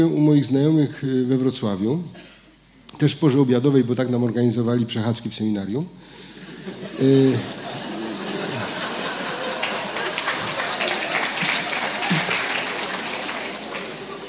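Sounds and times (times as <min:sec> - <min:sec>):
speech: 0:00.0 - 0:02.3, 0:02.9 - 0:06.2, 0:07.0 - 0:07.6
laughter: 0:06.4 - 0:14.2
audience applause: 0:08.2 - 0:14.2.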